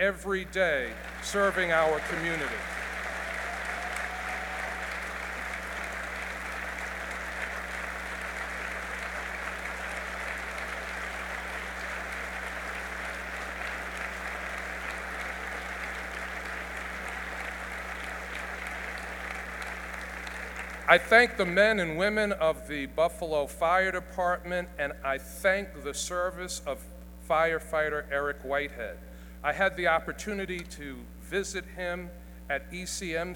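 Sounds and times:
speech: 0:00.0 - 0:02.8, 0:20.9 - 0:33.3
crowd applause: 0:00.0 - 0:21.6.

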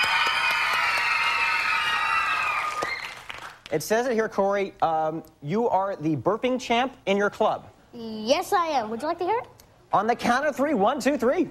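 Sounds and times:
audience applause and cheering: 0:00.0 - 0:03.7
speech: 0:03.7 - 0:11.5.

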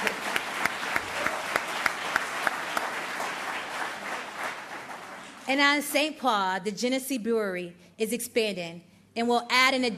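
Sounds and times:
round of applause: 0:00.0 - 0:05.5
speech: 0:05.5 - 0:09.9.

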